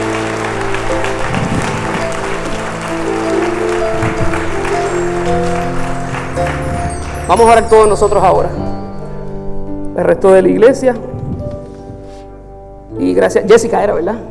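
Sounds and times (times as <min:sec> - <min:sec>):
audience applause: 0:00.0 - 0:08.4
sustained organ or keyboard chords: 0:00.0 - 0:10.0
speech: 0:07.3 - 0:08.7, 0:10.0 - 0:11.1, 0:13.0 - 0:14.2.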